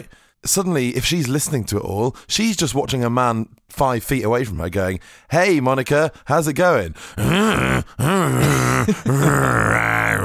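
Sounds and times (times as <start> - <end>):
speech: 0.0 - 10.2
man imitating a growl: 7.2 - 10.2.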